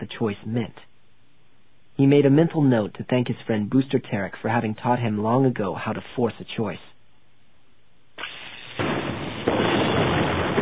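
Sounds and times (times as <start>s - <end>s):
speech: 0.2s - 0.9s, 2.0s - 6.9s
explosion blasting open a door: 8.2s - 10.6s
harsh sustained roar of crackling noise: 8.2s - 10.6s.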